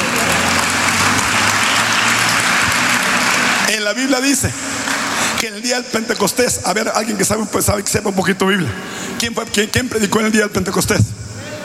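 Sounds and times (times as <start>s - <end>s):
audience applause: 0.0s - 5.4s
speech: 3.7s - 4.7s, 5.4s - 11.2s.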